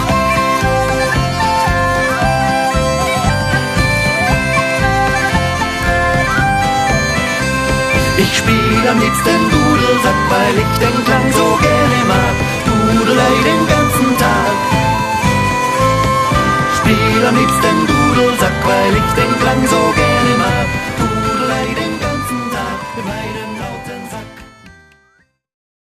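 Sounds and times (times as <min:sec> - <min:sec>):
bagpipes: 0:00.0 - 0:25.3.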